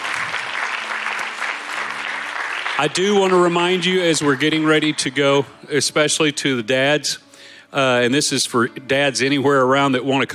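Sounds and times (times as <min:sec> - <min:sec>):
church audience applauding: 0:00.0 - 0:05.5
speech: 0:02.8 - 0:10.3.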